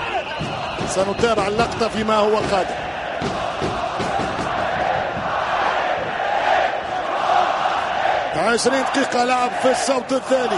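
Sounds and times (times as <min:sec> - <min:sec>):
football fans chanting in a stadium during a match: 0:00.3 - 0:10.5
speech: 0:00.9 - 0:03.4, 0:08.4 - 0:10.5.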